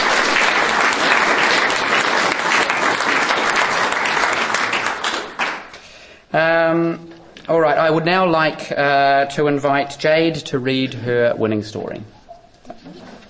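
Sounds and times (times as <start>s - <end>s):
audience applause: 0.0s - 5.8s
speech: 6.8s - 12.2s.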